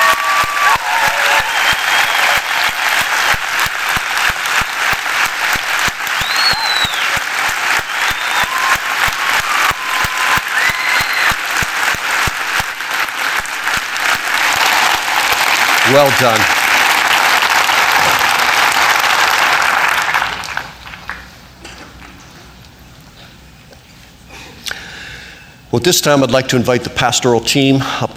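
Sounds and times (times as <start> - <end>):
audience applause: 0.0 - 21.3
speech: 15.9 - 16.6, 25.8 - 28.1.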